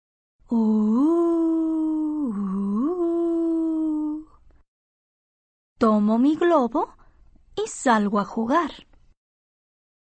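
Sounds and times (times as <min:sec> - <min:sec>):
speech: 0:00.5 - 0:00.9, 0:05.8 - 0:07.0, 0:07.6 - 0:08.9
voice imitating wind howling at the door: 0:00.6 - 0:04.3.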